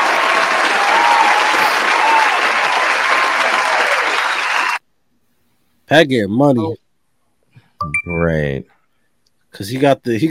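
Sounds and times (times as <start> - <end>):
round of applause: 0.0 - 4.8
speech: 5.9 - 6.8, 8.0 - 8.7, 9.5 - 10.2.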